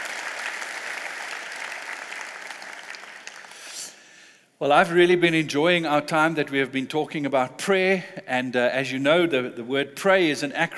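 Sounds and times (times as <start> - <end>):
audience applause: 0.0 - 3.7
speech: 4.6 - 10.7.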